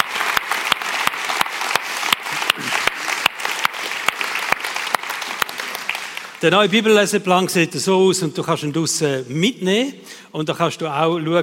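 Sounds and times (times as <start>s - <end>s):
audience applause: 0.0s - 6.7s
speech: 6.4s - 11.4s.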